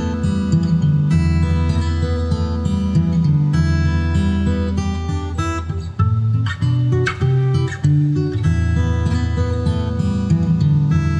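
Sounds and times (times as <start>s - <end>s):
guitar instrumental music: 0.0s - 11.1s.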